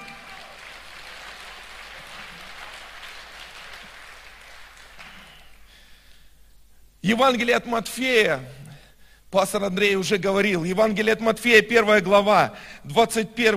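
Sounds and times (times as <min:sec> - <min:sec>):
audience applause: 0:00.0 - 0:05.8
speech: 0:07.1 - 0:08.6, 0:09.3 - 0:13.5.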